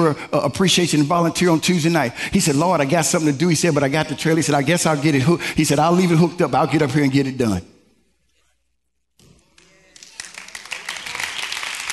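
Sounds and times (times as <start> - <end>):
speech: 0.0 - 7.7
audience clapping: 9.4 - 11.9.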